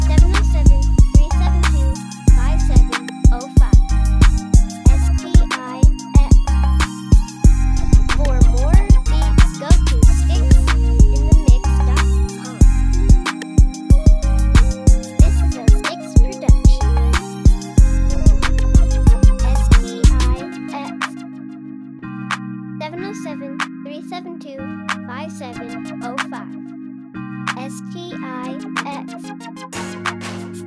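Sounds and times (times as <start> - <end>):
vibraphone: 0.0 - 21.2.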